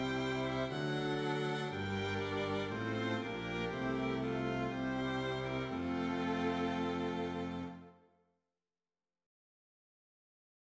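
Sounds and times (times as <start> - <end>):
strings playing a hymn: 0.0 - 8.0.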